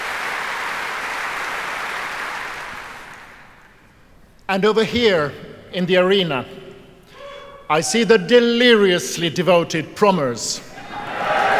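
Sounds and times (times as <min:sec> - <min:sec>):
audience applause for the performers at a Proms concert: 0:00.0 - 0:03.6, 0:11.0 - 0:11.5
speech: 0:04.5 - 0:06.6, 0:07.7 - 0:10.7.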